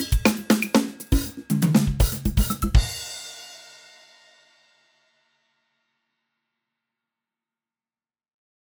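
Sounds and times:
standard studio drums: 0:00.0 - 0:04.7.

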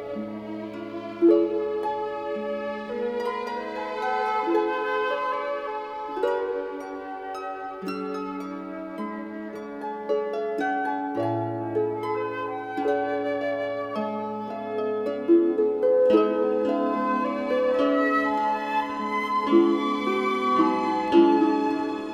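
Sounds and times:
harp: 0:00.0 - 0:22.1.

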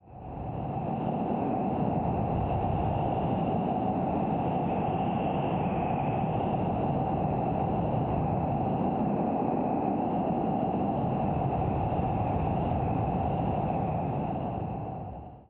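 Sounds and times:
alien planet ambience: 0:00.0 - 0:15.4.

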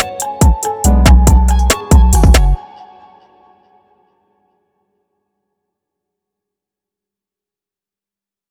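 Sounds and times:
kalimba: 0:00.0 - 0:02.6.

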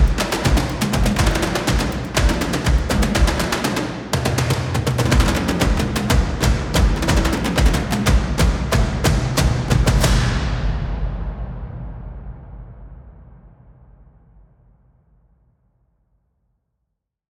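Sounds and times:
epic ensemble tom drum flutter: 0:00.0 - 0:10.6.

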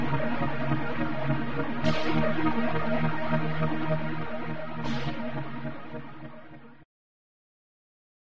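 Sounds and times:
flanged synth pad: 0:00.0 - 0:04.2
unprocessed synth pad: 0:00.0 - 0:06.6.

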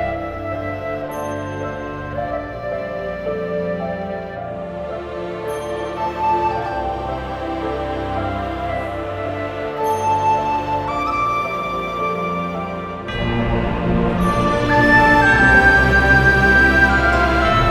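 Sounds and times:
calm tin whistle track: 0:00.0 - 0:17.6.

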